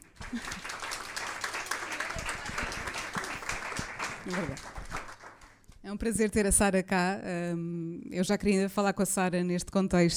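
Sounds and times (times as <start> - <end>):
audience applause: 0.0 - 5.6
speech: 0.3 - 0.6, 4.2 - 4.8, 5.8 - 10.1
laughter: 1.9 - 3.5.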